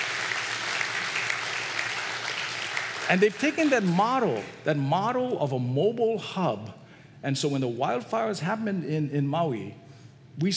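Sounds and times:
audience applause: 0.0 - 4.5
speech: 3.1 - 9.8, 10.4 - 10.5.

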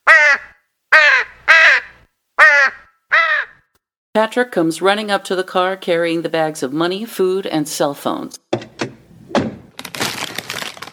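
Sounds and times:
ravens cawing on a roof: 0.0 - 3.7
speech: 4.2 - 8.4.

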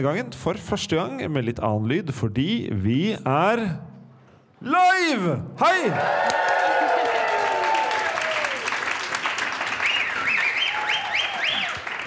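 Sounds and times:
speech: 0.0 - 3.9, 4.6 - 6.6
cheers and whoops: 5.9 - 8.8, 9.7 - 12.0
live audience applauding: 6.0 - 12.0
high rising and falling whistles: 9.7 - 11.9.

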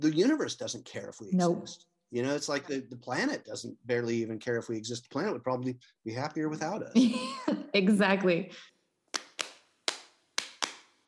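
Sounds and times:
speech: 0.0 - 8.7
sharp hand claps used as a transition: 9.1 - 11.0.

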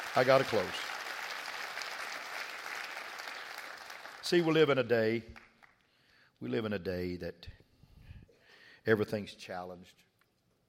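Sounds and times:
audience clapping: 0.0 - 5.9
speech: 0.2 - 0.8, 4.3 - 5.4, 6.4 - 7.6, 8.8 - 10.1.

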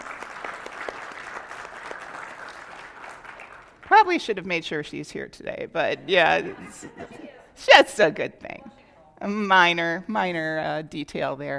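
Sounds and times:
audience clapping: 0.0 - 4.2
speech: 4.0 - 11.5
laughter: 5.8 - 7.6.

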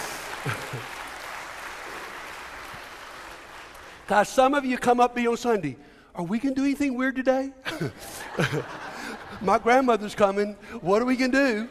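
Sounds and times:
audience applause: 0.0 - 4.1
laughter: 0.4 - 1.0, 7.7 - 9.8
speech: 4.1 - 11.6.

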